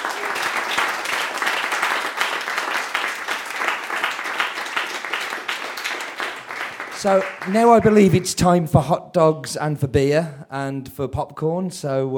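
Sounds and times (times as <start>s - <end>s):
audience applause: 0.0s - 8.3s
speech: 7.0s - 12.1s.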